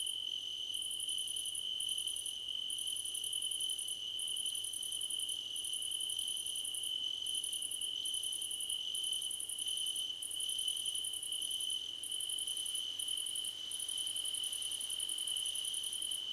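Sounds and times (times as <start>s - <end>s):
crickets chorus: 0.2s - 16.3s.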